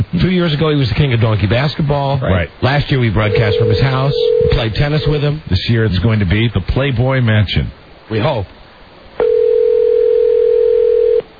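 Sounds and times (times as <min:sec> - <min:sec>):
faint hiss: 0:00.0 - 0:11.3
speech: 0:00.1 - 0:08.6
telephone dial tone: 0:03.3 - 0:05.1, 0:09.2 - 0:11.2.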